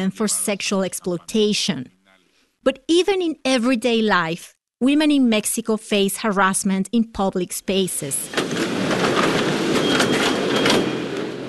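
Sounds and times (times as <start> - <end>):
speech: 0.0 - 2.0, 2.6 - 8.6
subway train rumbling at a station platform: 8.3 - 11.4.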